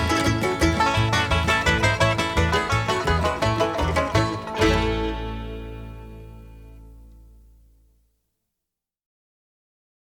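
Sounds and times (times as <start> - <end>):
banjos playing: 0.0 - 7.7.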